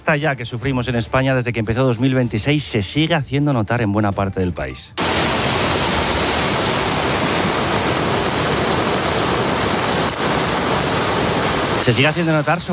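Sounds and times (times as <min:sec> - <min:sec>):
speech: 0:00.1 - 0:05.4, 0:11.9 - 0:12.7
heavy rain falling in Grazalema: 0:05.0 - 0:12.7.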